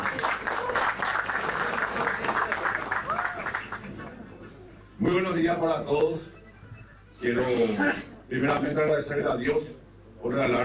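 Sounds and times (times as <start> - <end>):
audience applause: 0.0 - 4.2
speech: 5.0 - 6.4, 7.2 - 10.6.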